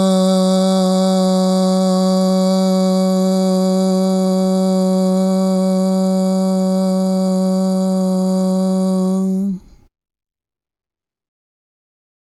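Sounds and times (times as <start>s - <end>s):
voice holding a steady medium-pitched ah vowel: 0.0s - 9.8s.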